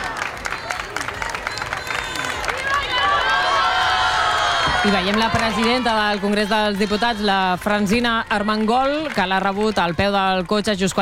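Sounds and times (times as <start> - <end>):
sizable crowd applause welcoming arrival at parliament: 0.0 - 11.0
whistles: 0.4 - 2.6
speech: 4.8 - 11.0.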